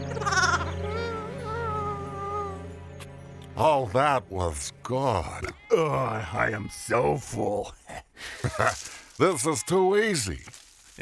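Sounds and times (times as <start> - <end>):
lamb bleating: 0.1 - 1.2, 5.2 - 6.9
speech: 3.6 - 10.9.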